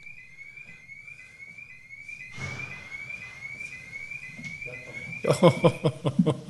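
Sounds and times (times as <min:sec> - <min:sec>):
car alarm wailing: 0:00.0 - 0:06.4
laughter: 0:05.2 - 0:06.4.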